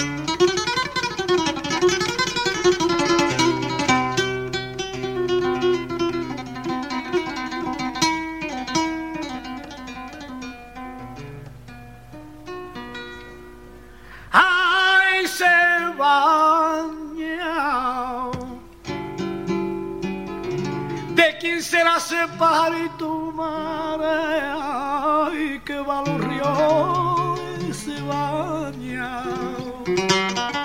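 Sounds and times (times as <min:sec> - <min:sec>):
guitar accompanying a taranta: 0:00.0 - 0:14.5, 0:18.2 - 0:30.6
person singing a taranta: 0:14.3 - 0:18.7, 0:21.1 - 0:30.4.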